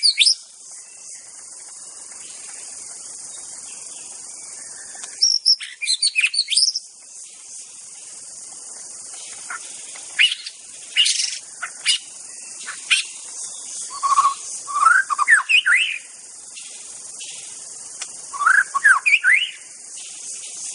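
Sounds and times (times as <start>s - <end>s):
white-rumped shama song with clicks and looping whistles: 0.0s - 0.4s, 4.7s - 6.9s, 13.9s - 16.0s, 18.0s - 19.6s
continuous high insect drone: 0.0s - 20.7s.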